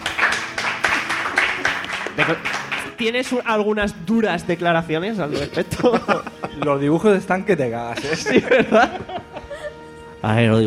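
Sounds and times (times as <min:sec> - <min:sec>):
small group clapping for a prize winner: 0:00.0 - 0:03.5
speech: 0:02.3 - 0:09.1, 0:10.2 - 0:10.6
laughter: 0:05.3 - 0:09.9.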